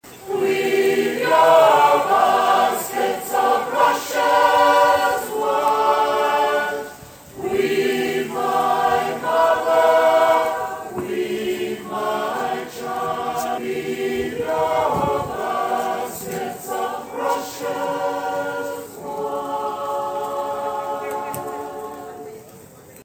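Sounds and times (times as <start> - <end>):
intro choir music: 0.1 - 22.5.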